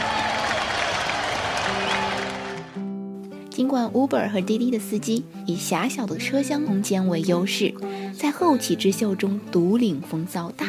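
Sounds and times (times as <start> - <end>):
warm applause: 0.0 - 2.8
speech: 3.6 - 10.6.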